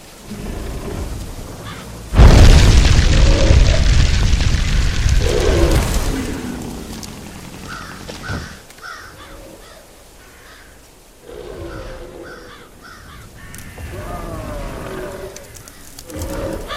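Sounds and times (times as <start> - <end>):
video game fireball explosion: 2.1 - 7.6.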